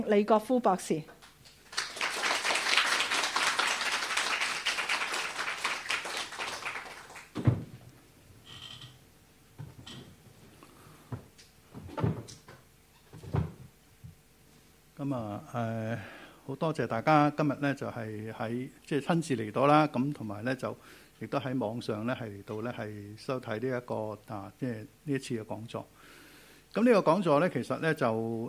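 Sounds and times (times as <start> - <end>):
speech: 0.0 - 1.2, 15.2 - 28.4
audience applause: 1.4 - 7.4.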